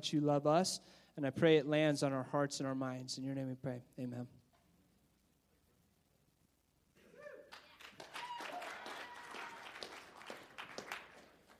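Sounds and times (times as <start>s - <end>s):
speech: 0.0s - 4.4s
audience applause: 7.5s - 11.5s.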